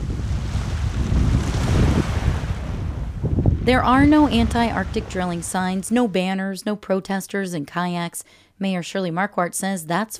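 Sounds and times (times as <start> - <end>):
brisk nighttime wind in Dutch Harbor: 0.0 - 6.0
speech: 3.7 - 10.1.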